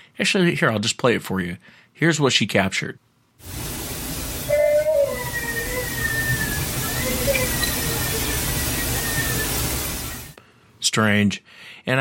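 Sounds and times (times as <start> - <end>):
speech: 0.2 - 3.6, 10.9 - 11.9
steady hiss: 3.2 - 11.9
baby crying outdoors at night: 4.5 - 8.4.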